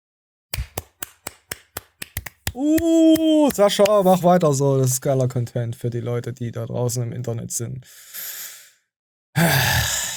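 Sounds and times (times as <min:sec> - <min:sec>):
hands clapping: 0:00.6 - 0:04.2
speech: 0:02.6 - 0:08.4, 0:09.4 - 0:09.7.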